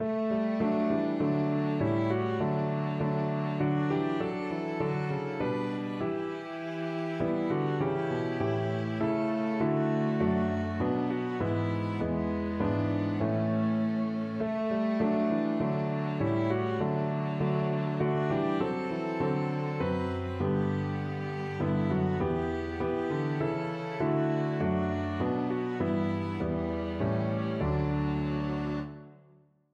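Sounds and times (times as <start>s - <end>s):
piano quartet playing: 0.0s - 29.1s.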